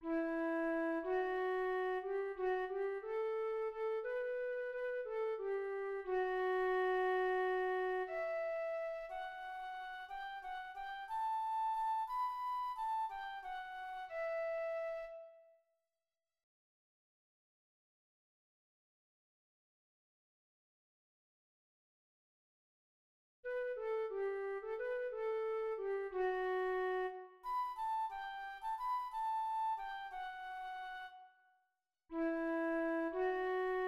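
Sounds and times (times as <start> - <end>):
flute: 0.0 - 15.6, 23.5 - 33.8.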